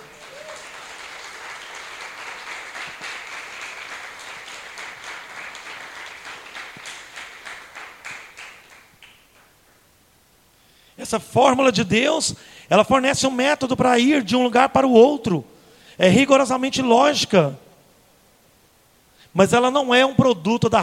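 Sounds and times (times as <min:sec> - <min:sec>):
crowd applause: 0:00.0 - 0:09.5
speech: 0:11.1 - 0:17.6, 0:19.4 - 0:20.8.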